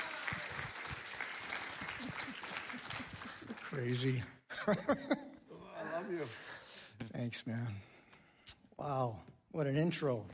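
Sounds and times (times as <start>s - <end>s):
church congregation applauding a guest preacher: 0.0s - 4.4s
laughter: 1.7s - 6.6s
speech: 3.8s - 5.2s, 6.0s - 6.5s, 7.1s - 7.9s, 8.8s - 10.3s.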